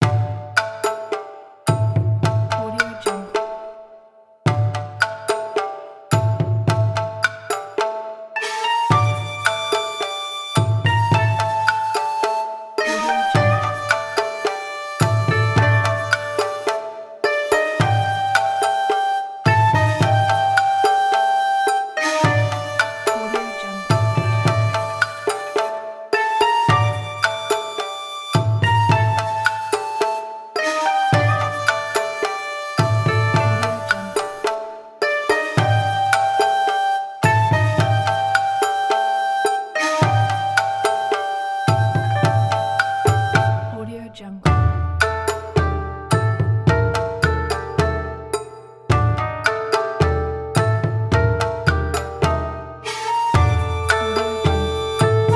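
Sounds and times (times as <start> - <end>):
Japanese Edo-style rhythm: 0.0 - 55.3.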